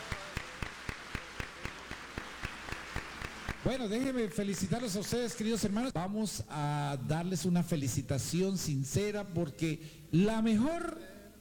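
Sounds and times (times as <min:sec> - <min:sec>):
crowd noise: 0:00.0 - 0:04.2
audience clapping in rhythm: 0:00.0 - 0:05.9
speech: 0:03.7 - 0:11.2.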